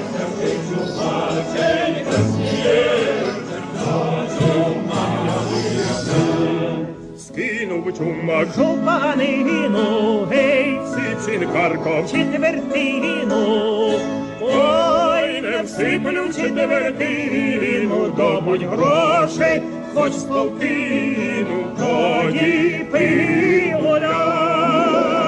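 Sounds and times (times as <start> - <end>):
Ukrainian tenor singing a Ukrainian traditional song: 0.0 - 25.2.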